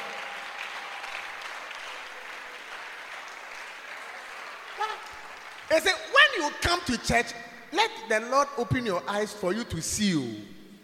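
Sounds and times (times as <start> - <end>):
audience clapping: 0.0 - 6.9
speech: 5.7 - 10.6.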